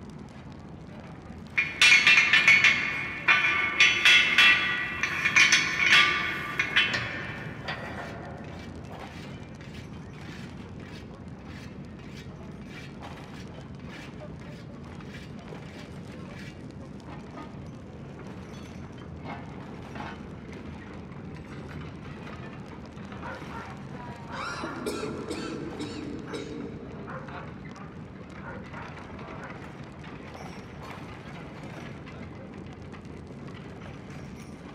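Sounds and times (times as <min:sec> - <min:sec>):
city dungeon prison ambience: 0:01.6 - 0:08.8.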